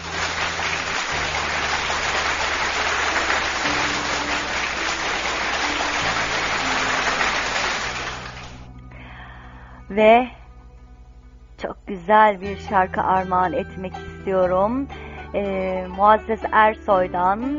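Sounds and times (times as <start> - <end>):
audience applause: 0.0 - 8.7
speech: 10.0 - 10.4, 11.6 - 17.5.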